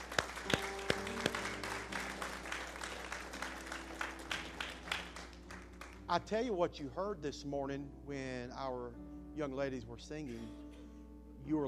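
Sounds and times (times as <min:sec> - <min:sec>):
audience applause: 0:00.0 - 0:06.1
speech: 0:06.1 - 0:10.6, 0:11.5 - 0:11.6.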